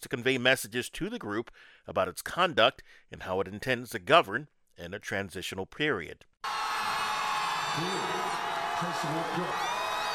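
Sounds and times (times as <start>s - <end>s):
speech: 0.0s - 6.6s, 7.8s - 8.2s, 8.8s - 9.7s
large crowd cheering as South Korea's Parliament approved the impeachment motion: 6.4s - 10.1s.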